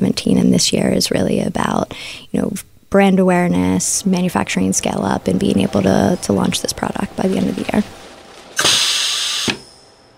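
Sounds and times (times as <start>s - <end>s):
speech: 0.6s - 8.0s
machine whirring making pregnancy test strips: 3.9s - 10.1s.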